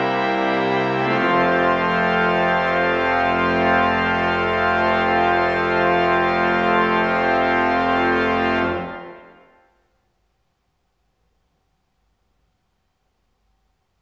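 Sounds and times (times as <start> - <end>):
fanfare on a small organ: 0.0 - 9.6.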